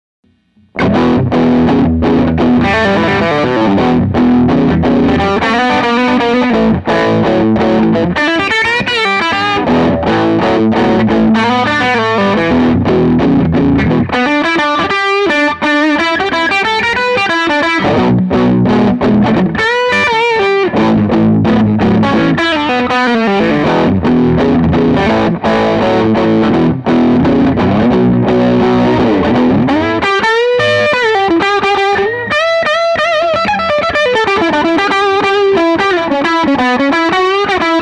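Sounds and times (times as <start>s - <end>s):
guitar boogie: 0.3s - 37.7s.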